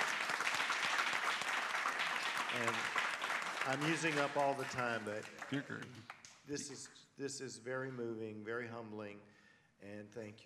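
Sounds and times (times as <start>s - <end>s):
audience applause: 0.0s - 6.3s
speech: 2.5s - 3.0s, 3.6s - 10.4s.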